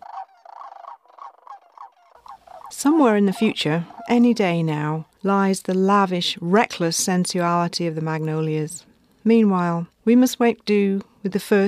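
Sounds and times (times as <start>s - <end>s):
returning sandhill cranes croaking calls: 0.0s - 4.9s
speech: 2.7s - 11.6s.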